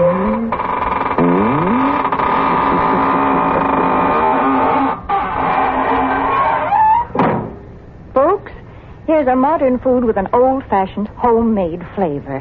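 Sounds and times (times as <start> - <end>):
squeaking door closing: 0.0 - 7.7
speech: 9.2 - 12.3.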